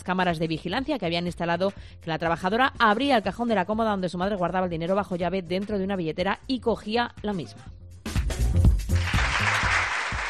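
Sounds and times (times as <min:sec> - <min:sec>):
speech: 0:00.0 - 0:07.8
crowd applause: 0:08.9 - 0:10.2.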